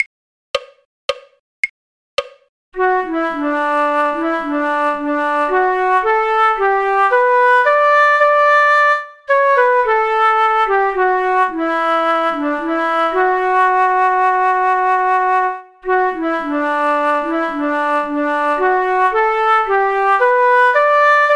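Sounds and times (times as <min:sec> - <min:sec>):
flute: 0:02.8 - 0:21.3.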